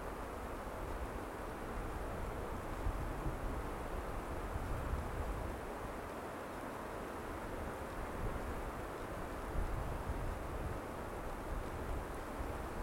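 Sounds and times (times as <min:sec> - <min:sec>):
cold winter wind: 0:00.0 - 0:12.8.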